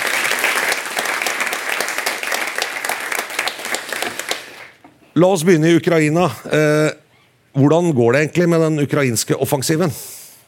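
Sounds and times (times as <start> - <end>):
audience applause: 0.0 - 4.8
speech: 5.2 - 7.0, 7.6 - 10.2.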